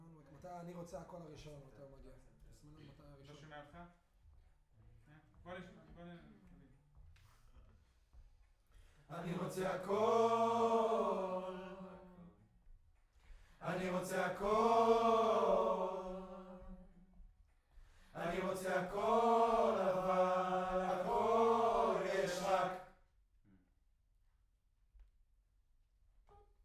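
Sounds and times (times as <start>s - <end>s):
distant choir: 9.1s - 12.3s, 13.6s - 17.0s, 18.0s - 23.0s.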